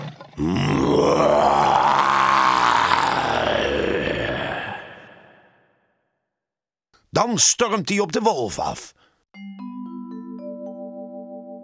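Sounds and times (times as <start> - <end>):
speech: 0.4 - 1.2, 7.2 - 9.0
voice imitating a lion's roar: 0.4 - 5.6.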